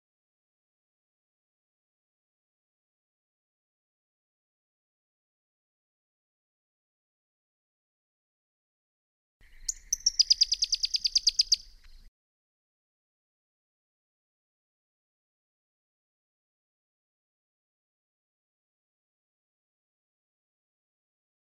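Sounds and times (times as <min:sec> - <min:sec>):
Pyrrhuloxia giving a rapid chattering series of crisp high chip notes: 0:09.7 - 0:11.6.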